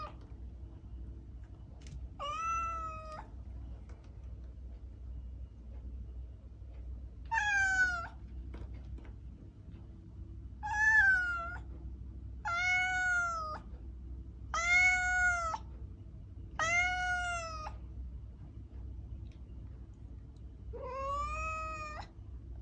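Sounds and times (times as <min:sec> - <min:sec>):
cat noises: 0:00.0 - 0:00.4, 0:01.8 - 0:03.6, 0:07.2 - 0:08.3, 0:10.6 - 0:11.8, 0:12.4 - 0:13.7, 0:14.5 - 0:15.7, 0:16.5 - 0:17.9, 0:20.6 - 0:22.2.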